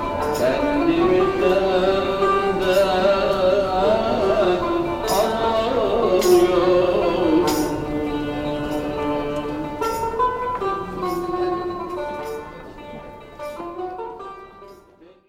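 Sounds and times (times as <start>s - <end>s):
cümbüş playing in Taksim Metro: 0.0s - 15.1s
person singing in Taksim Metro: 0.3s - 11.3s.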